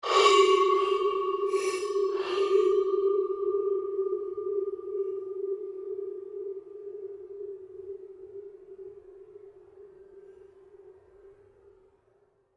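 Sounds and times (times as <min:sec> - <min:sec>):
long pulsing synth effect: 0:00.0 - 0:09.0.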